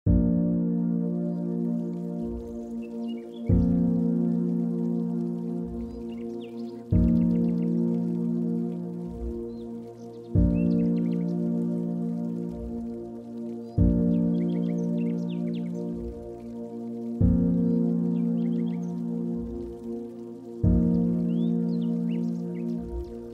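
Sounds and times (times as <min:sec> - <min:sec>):
spa music: 0:00.1 - 0:23.3
birds: 0:00.2 - 0:23.3.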